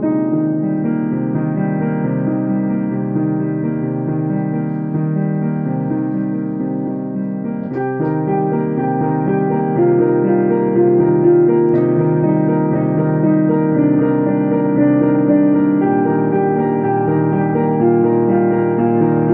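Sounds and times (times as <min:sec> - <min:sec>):
piano: 0:00.0 - 0:19.3.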